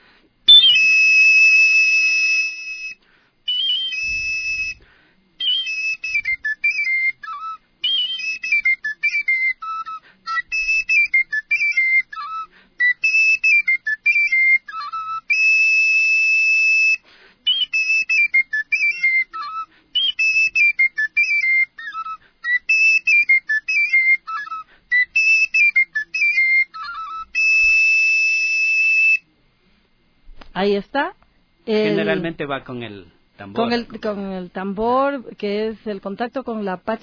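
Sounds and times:
traditional ruku tune from Valles de los Chillos on a whistling wind instrument: 0.5 - 29.3
speech: 30.6 - 37.0.

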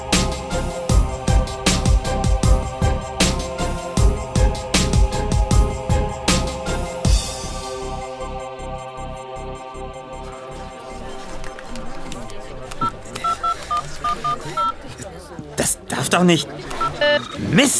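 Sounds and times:
busy rhythmic background: 0.0 - 17.7
mobile phone keypad dual-tone beeps: 12.8 - 14.8, 16.7 - 17.4
speech: 16.1 - 16.6, 17.5 - 17.7.

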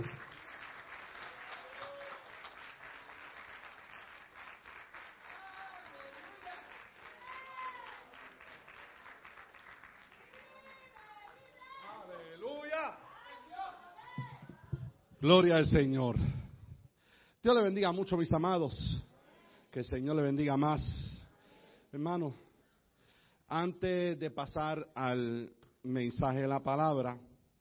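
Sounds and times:
audience applauding loudly: 0.0 - 12.6
speech: 15.2 - 16.4, 17.4 - 19.1, 19.7 - 21.0, 22.0 - 22.4, 23.5 - 27.3.

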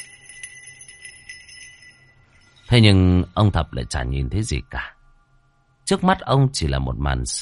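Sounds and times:
small bell jingling: 0.0 - 2.8
speech: 2.7 - 5.0, 5.9 - 7.4.

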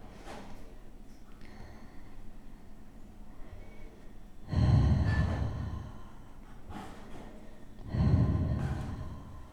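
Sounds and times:
heavy forceful breathing of a person pushing against a plastic body brace: 4.5 - 6.3, 7.8 - 9.5.

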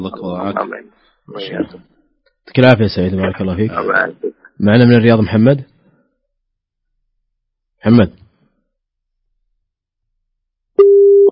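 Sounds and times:
speech: 0.0 - 5.7, 7.8 - 8.2
busy tone on a telephone line after a phone-in caller was cut off: 10.8 - 11.3.

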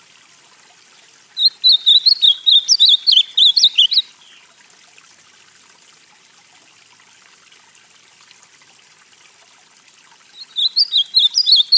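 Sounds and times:
ultramarine grosbeak singing: 1.4 - 4.4, 10.4 - 11.7.

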